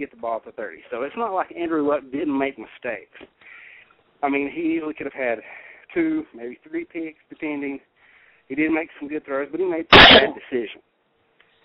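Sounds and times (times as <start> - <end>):
speech: 0.0 - 3.6, 4.2 - 7.9, 8.5 - 10.9
person sneezing: 9.9 - 10.4.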